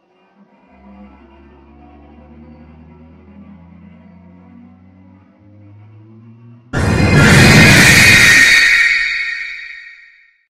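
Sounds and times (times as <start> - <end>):
jump scare sound: 6.8 - 10.2.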